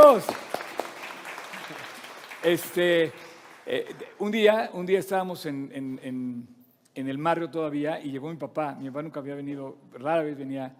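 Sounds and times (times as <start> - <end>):
audience applause: 0.0 - 4.2
speech: 0.1 - 0.5, 2.4 - 10.7.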